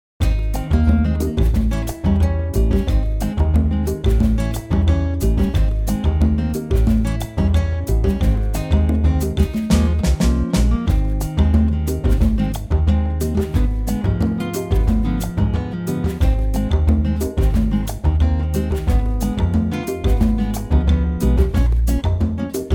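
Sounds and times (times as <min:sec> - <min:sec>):
acoustic guitar in A flat: 0:00.2 - 0:22.7.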